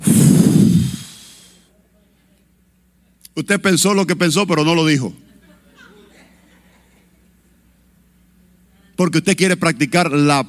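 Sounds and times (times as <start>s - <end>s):
big deep breath, breathing hard: 0.0s - 1.6s
speech: 3.4s - 5.2s, 9.0s - 10.4s
laughter: 5.2s - 7.3s.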